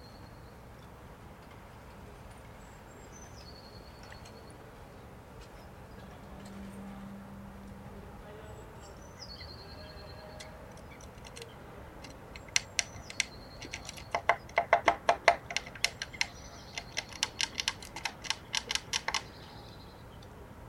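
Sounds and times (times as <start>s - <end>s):
Eurasian blue tit thin whistle and clicking notes: 10.8s - 19.3s.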